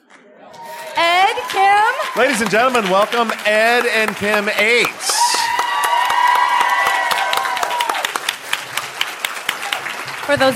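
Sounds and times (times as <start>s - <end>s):
audience cheers and whoops: 0.6s - 2.5s, 5.0s - 8.3s
audience applause in a standing ovation for two guests: 0.6s - 10.5s
speech: 1.5s - 5.1s, 10.3s - 10.5s.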